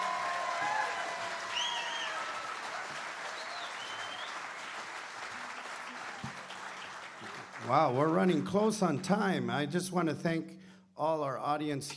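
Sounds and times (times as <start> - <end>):
audience applause: 0.0 - 8.8
speech: 7.7 - 11.9.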